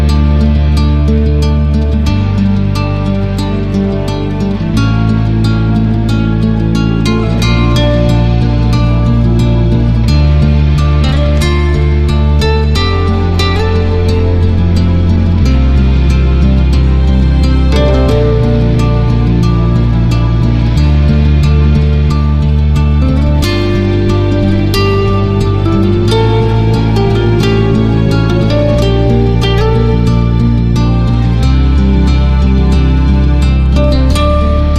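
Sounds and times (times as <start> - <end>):
guitars: 0.0 - 34.7
strings: 0.0 - 34.7.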